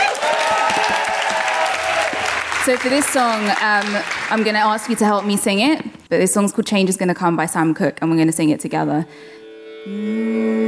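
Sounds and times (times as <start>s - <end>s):
audience applause for performers: 0.0s - 5.8s
speech: 2.6s - 10.6s.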